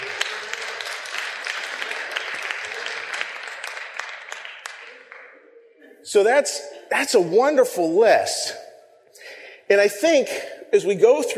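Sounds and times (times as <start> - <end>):
audience applause: 0.0 - 5.4
speech: 6.1 - 8.6, 9.7 - 11.3.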